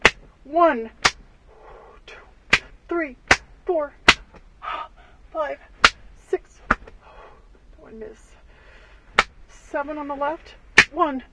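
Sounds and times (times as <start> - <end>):
open-handed slaps to the chest: 0.0 - 0.3, 1.0 - 1.2, 2.5 - 2.7, 3.3 - 4.4, 5.8 - 6.0, 6.6 - 7.0, 9.2 - 9.4, 10.8 - 11.0
speech: 0.5 - 1.0, 3.0 - 4.0, 5.4 - 5.7, 7.9 - 8.3, 9.7 - 11.3.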